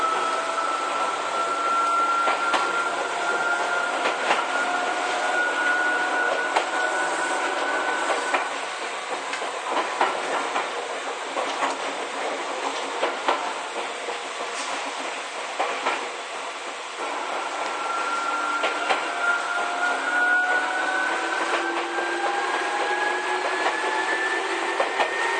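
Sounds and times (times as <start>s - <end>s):
whining motor tones of Izukyu 8000 series train: 0.0s - 8.5s, 17.1s - 25.3s
Izukyu 8000 series train running between Izu-Kogen and Izukyu-Shimoda: 0.0s - 25.3s.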